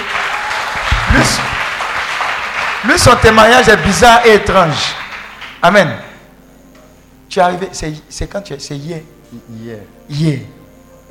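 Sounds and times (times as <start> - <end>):
audience applause: 0.0 - 5.6
single voice cheering shout: 0.1 - 1.6
speech: 1.2 - 1.6, 2.8 - 5.0, 5.6 - 6.0, 7.3 - 11.1.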